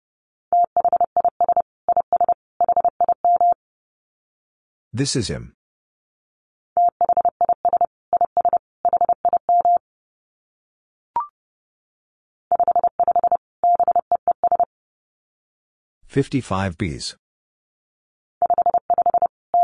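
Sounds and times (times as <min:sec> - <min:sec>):
Morse code beeps at 30 wpm: 0:00.6 - 0:03.6, 0:06.8 - 0:09.8, 0:12.5 - 0:14.7, 0:18.4 - 0:19.6
speech: 0:05.0 - 0:05.6, 0:16.2 - 0:17.2.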